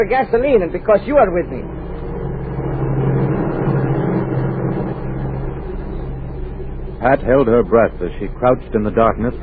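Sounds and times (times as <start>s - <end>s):
speech: 0.0s - 1.8s, 7.0s - 9.4s
airplane engine droning in flight: 0.0s - 9.4s.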